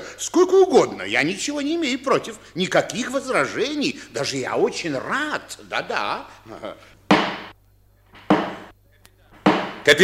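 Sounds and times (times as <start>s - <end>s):
speech: 0.2s - 6.9s, 9.8s - 10.0s
chairman's gavel knocking: 7.1s - 7.5s, 8.2s - 8.7s, 9.4s - 10.0s.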